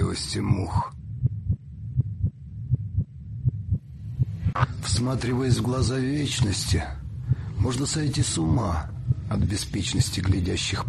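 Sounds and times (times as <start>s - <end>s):
faint continuous hum: 0.0s - 10.8s
speech: 0.4s - 1.0s, 5.0s - 7.0s, 7.7s - 10.8s
heartbeat pulse: 1.0s - 4.6s, 8.2s - 9.6s.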